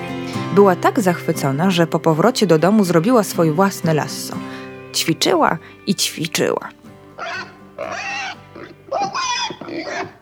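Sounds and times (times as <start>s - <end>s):
speech: 0.5s - 8.2s
piglet squealing: 7.1s - 10.2s.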